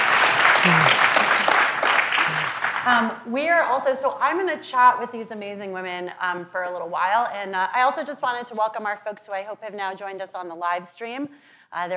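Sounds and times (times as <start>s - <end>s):
audience applause welcoming a panel of women advocates on stage: 0.0s - 3.0s
speech: 2.8s - 11.9s.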